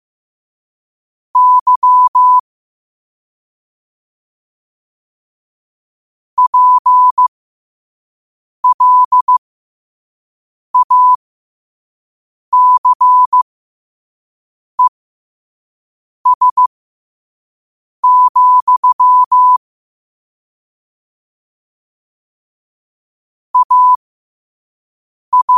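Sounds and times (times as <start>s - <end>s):
morse code at 5 wpm: 1.4s - 2.4s, 6.4s - 7.2s, 8.6s - 9.4s, 12.6s - 13.4s, 16.3s - 16.7s, 18.0s - 19.6s, 23.6s - 24.0s, 25.3s - 25.5s.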